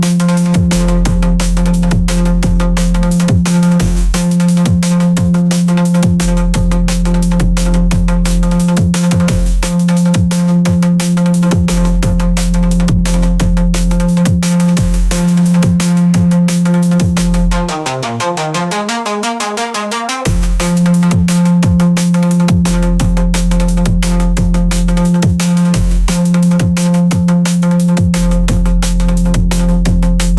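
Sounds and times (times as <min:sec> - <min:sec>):
monster bass: 0:00.0 - 0:30.3.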